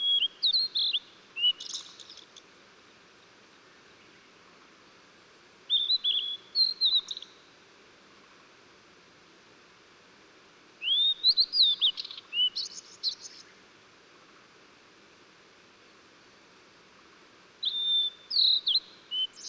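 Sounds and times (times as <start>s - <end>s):
Blue-and-white flycatcher song of clear slurred whistles and sharp high notes: 0.0s - 2.2s, 5.7s - 7.4s, 10.8s - 13.6s, 17.6s - 19.4s.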